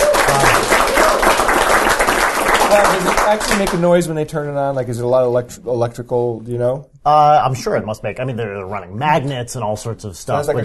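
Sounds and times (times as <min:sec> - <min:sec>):
applause from a small group: 0:00.0 - 0:03.9
speech: 0:02.7 - 0:10.6.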